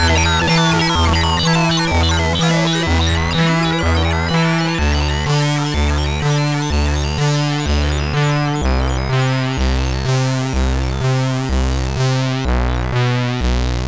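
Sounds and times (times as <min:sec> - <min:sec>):
chiptune music on a MOS6581R3 sound chip: 0:00.0 - 0:13.8.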